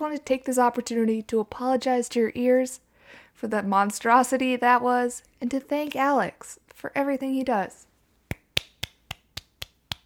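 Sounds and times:
speech: 0:00.0 - 0:02.8, 0:03.4 - 0:07.9
one person clapping: 0:08.3 - 0:10.0.

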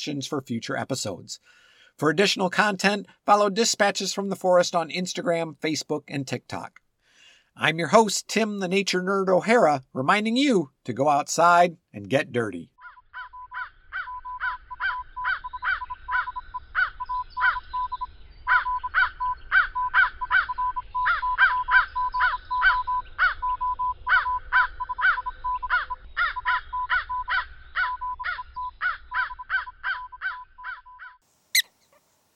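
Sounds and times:
speech: 0:00.0 - 0:06.8, 0:07.6 - 0:12.7
prairie dog calls: 0:12.8 - 0:31.7.

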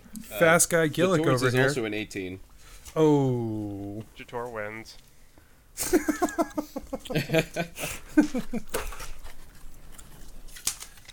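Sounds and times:
speech: 0:00.3 - 0:05.1, 0:05.8 - 0:09.0
laughter: 0:05.8 - 0:09.0
person chewing food: 0:08.7 - 0:11.1.

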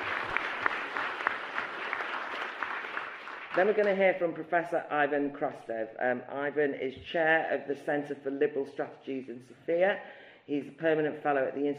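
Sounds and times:
audience applause welcoming a speaker: 0:00.0 - 0:03.9
speech: 0:03.6 - 0:11.7.

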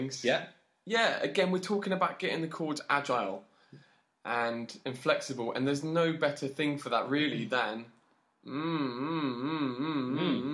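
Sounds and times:
speech: 0:00.0 - 0:10.5
person humming a sustained buzzy tone: 0:08.5 - 0:10.5.

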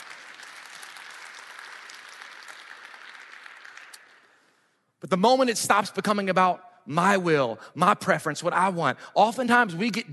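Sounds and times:
sizable audience clapping: 0:00.0 - 0:04.6
speech: 0:05.0 - 0:10.1.

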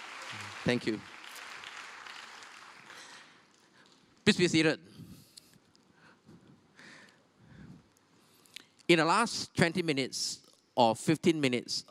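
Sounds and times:
audience applause: 0:00.0 - 0:03.4
speech: 0:00.3 - 0:01.1, 0:04.3 - 0:04.9, 0:08.9 - 0:11.8.

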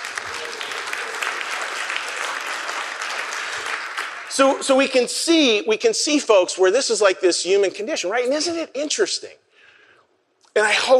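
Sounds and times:
audience applause: 0:00.0 - 0:04.6
speech: 0:04.3 - 0:09.4, 0:10.6 - 0:10.9.

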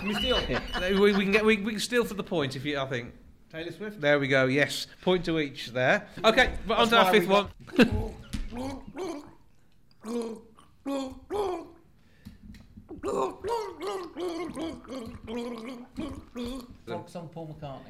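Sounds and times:
laughter: 0:00.0 - 0:01.6
speech: 0:00.0 - 0:09.3, 0:10.0 - 0:11.8, 0:12.9 - 0:17.8
person gargling a song tune: 0:08.0 - 0:11.9, 0:12.9 - 0:16.9.

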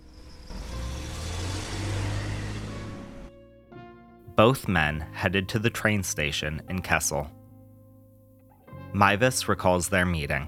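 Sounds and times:
car pulling out of a driveway: 0:00.0 - 0:03.6
speech: 0:04.4 - 0:07.4, 0:08.9 - 0:10.4.

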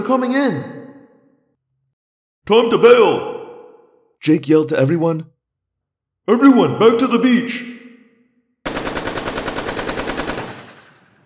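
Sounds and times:
speech: 0:00.0 - 0:00.8, 0:02.5 - 0:03.3, 0:04.2 - 0:05.3, 0:06.3 - 0:07.8
automatic gunfire: 0:08.6 - 0:11.2.

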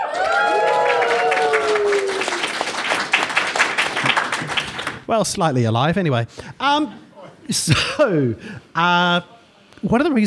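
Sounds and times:
live audience crowd noise: 0:00.0 - 0:05.0
live audience clapping: 0:00.0 - 0:05.1
speech: 0:05.1 - 0:10.2.

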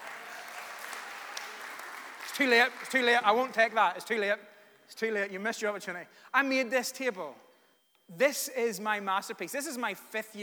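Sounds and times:
audience clapping and applauding: 0:00.0 - 0:03.8
speech: 0:02.4 - 0:07.4, 0:08.1 - 0:10.4.

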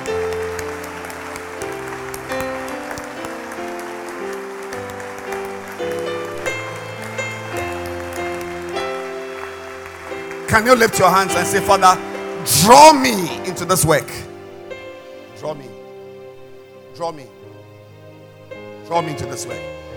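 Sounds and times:
clapping: 0:00.0 - 0:13.2
speech: 0:10.6 - 0:14.3, 0:15.4 - 0:15.8, 0:17.0 - 0:17.4, 0:18.9 - 0:19.9.

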